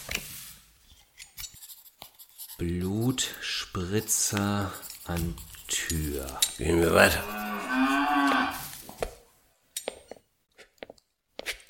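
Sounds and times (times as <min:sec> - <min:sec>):
speech: 0:02.6 - 0:08.6
cattle mooing in a barn: 0:07.0 - 0:08.6.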